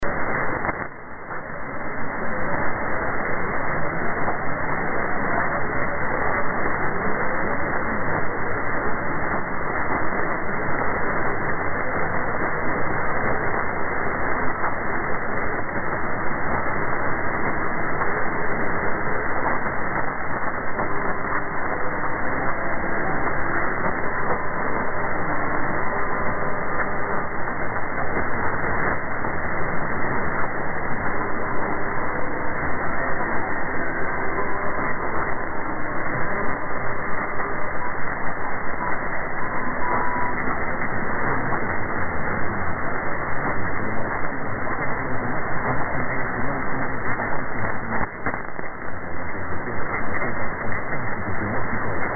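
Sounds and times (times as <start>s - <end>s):
radio station interval signal: 0.0s - 52.1s.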